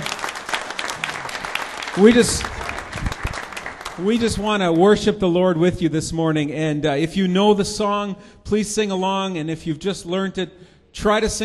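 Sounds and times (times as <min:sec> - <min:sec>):
church congregation clapping at a morning service: 0:00.0 - 0:05.2
speech: 0:02.0 - 0:02.6, 0:04.0 - 0:11.4.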